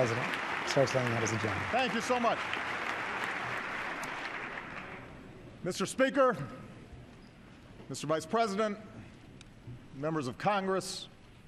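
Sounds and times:
speech: 0.0s - 2.9s, 5.6s - 6.6s, 7.9s - 9.0s, 10.0s - 11.1s
large standing crowd applauding: 0.0s - 5.2s.

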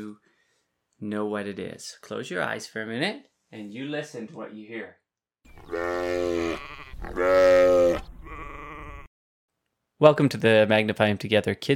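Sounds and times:
speech: 1.0s - 8.0s, 10.0s - 11.7s
sheep bleating: 5.6s - 9.1s.

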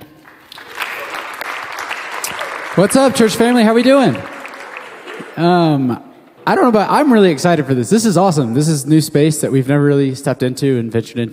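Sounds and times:
church congregation applauding a speaker: 0.0s - 5.9s
speech: 2.8s - 4.3s, 5.4s - 11.3s.

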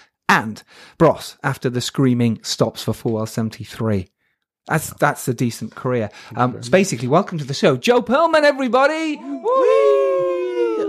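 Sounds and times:
speech: 0.3s - 10.0s
person imitating a wolf howl: 9.2s - 10.8s.

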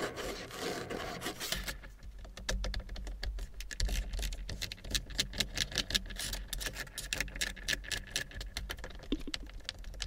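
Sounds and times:
tapping and scraping inside a car: 0.1s - 10.0s.

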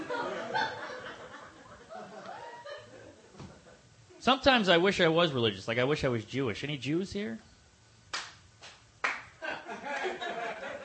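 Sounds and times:
laughter: 0.0s - 3.8s, 9.4s - 10.8s
speech: 4.2s - 7.5s
sparse weak audience clapping: 8.1s - 10.2s.

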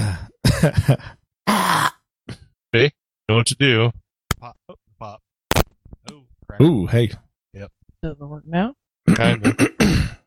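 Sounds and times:
speech: 0.6s - 1.9s, 2.7s - 5.2s, 6.5s - 10.2s
throat clearing: 9.1s - 10.2s.

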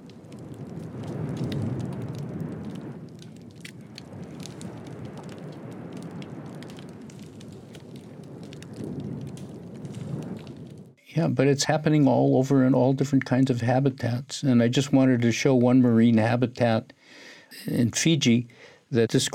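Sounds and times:
snapping shrimp crackling on a dying reef: 0.0s - 11.0s
speech: 11.2s - 19.3s.

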